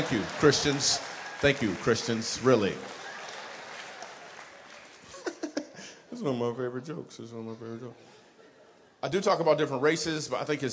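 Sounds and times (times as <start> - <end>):
speech: 0.0 - 3.0, 6.2 - 8.1, 9.0 - 10.7
audience clapping: 0.0 - 5.4.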